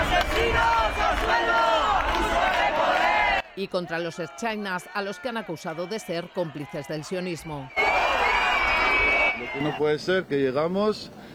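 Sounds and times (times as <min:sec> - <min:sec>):
protest crowd shouting slogans: 0:00.0 - 0:09.8
speech: 0:03.6 - 0:08.2, 0:09.4 - 0:11.3.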